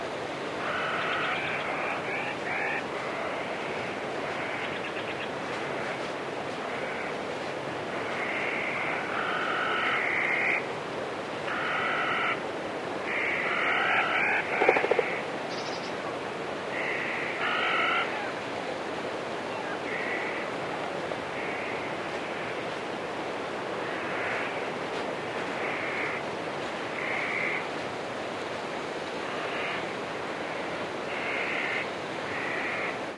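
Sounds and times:
water in a forest: 0:00.0 - 0:33.1
birds singing in a forest: 0:14.6 - 0:16.0.

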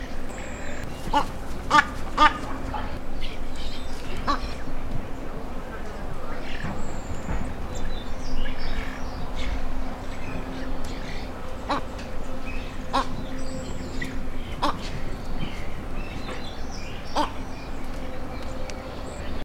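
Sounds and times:
crested ibis calling: 0:00.0 - 0:19.4.

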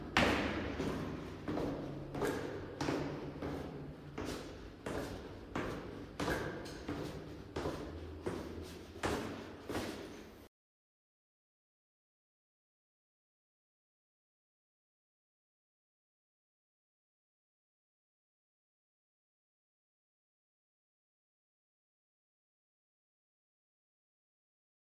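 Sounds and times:
footsteps going up and down stairs: 0:00.0 - 0:10.5.

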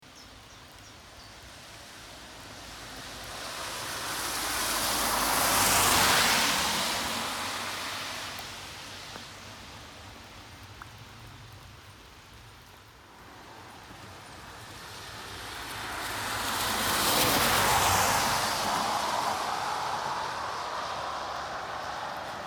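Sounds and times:
car passing on wet road: 0:00.1 - 0:22.4.

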